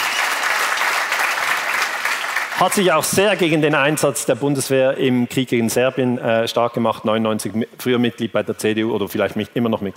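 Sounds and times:
audience clapping: 0.0s - 3.5s
speech: 2.6s - 9.9s.

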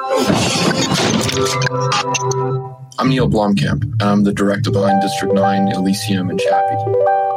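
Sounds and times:
computers and monitor strapped to a Hummer being smashed: 0.1s - 2.5s
speech: 1.4s - 7.2s.

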